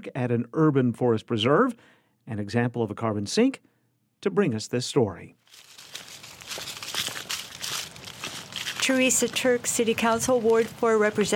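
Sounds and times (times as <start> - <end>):
speech: 0.0 - 5.7, 8.9 - 11.3
footsteps of a person and a black Labrador hiking into a forest preserve in Fayetteville: 5.4 - 11.3.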